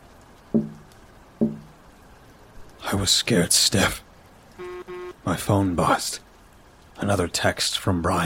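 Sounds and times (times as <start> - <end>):
tapping on a window: 0.5 - 1.7
speech: 2.9 - 4.1, 5.2 - 6.2, 7.0 - 8.2.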